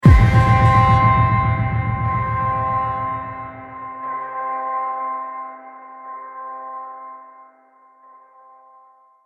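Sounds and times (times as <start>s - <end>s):
cruel astral accent trailer hit: 0.0s - 4.1s.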